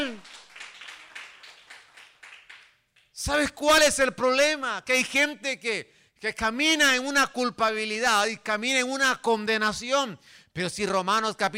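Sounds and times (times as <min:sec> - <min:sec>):
crowd audience applauding: 0:00.0 - 0:03.1
speech: 0:03.2 - 0:11.5.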